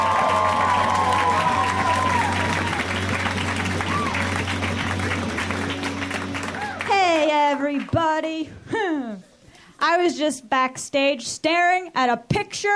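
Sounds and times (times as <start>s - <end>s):
comedy show audience applauding and cheering a comic: 0.0s - 8.0s
speech: 9.9s - 12.7s.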